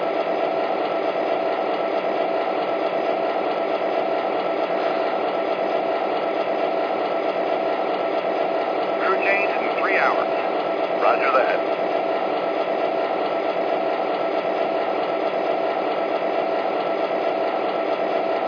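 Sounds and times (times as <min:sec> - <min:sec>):
trains: 0:00.0 - 0:18.4.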